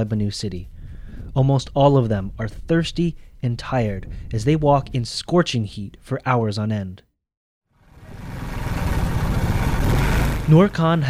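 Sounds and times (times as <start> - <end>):
speech: 0.0 - 0.7, 1.3 - 7.1, 10.5 - 11.0
motorcycle engine roaring, driven fast along a road: 7.8 - 11.0.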